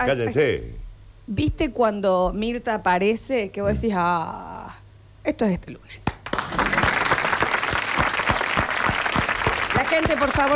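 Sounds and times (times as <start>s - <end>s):
speech: 0.0s - 4.6s, 5.2s - 6.0s, 9.9s - 10.5s
steady rhythmic beat of stronger claps: 6.0s - 10.5s
audience applause: 6.2s - 10.5s.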